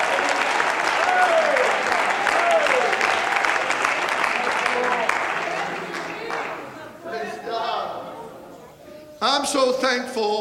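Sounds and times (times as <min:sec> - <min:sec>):
audience clapping: 0:00.0 - 0:06.9
speech: 0:09.4 - 0:10.3.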